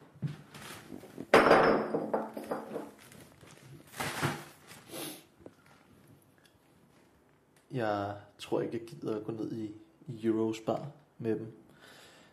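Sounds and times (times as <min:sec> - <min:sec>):
glass bottles clinking together: 0:01.3 - 0:03.0
speech: 0:07.8 - 0:11.6.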